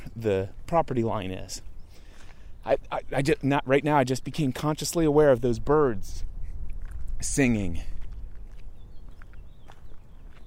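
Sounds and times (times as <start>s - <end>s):
footsteps on gravel: 0.0s - 5.0s, 6.0s - 10.4s
speech: 0.2s - 1.7s, 2.6s - 6.3s, 7.2s - 7.9s.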